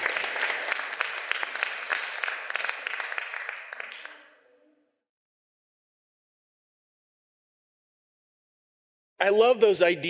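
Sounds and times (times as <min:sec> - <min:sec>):
crowd applause: 0:00.0 - 0:04.4
speech: 0:09.2 - 0:10.0.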